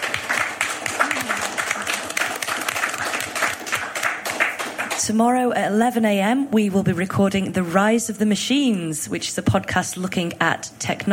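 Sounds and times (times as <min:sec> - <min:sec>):
audience applause: 0:00.0 - 0:05.0
speech: 0:05.1 - 0:11.1.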